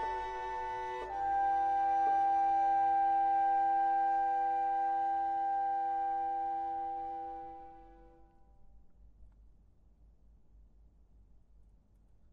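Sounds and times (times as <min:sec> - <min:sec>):
clarinet quintet: 0:00.0 - 0:08.2.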